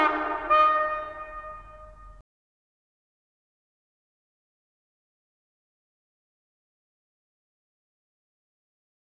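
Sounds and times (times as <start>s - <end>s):
trumpet: 0.0s - 2.2s.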